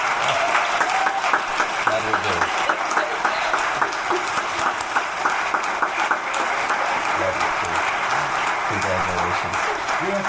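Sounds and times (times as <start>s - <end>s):
audience cheering and clapping: 0.0s - 10.2s.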